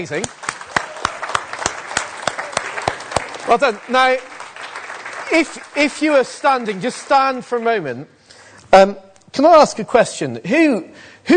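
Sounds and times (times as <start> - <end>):
speech: 0.0 - 0.5, 3.4 - 4.3, 5.3 - 11.3
audience applause for race runners at a morning gathering: 0.0 - 7.4.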